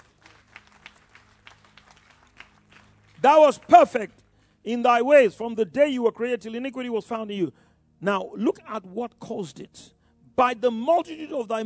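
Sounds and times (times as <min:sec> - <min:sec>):
group clapping: 0:00.0 - 0:04.0
speech: 0:03.2 - 0:11.6.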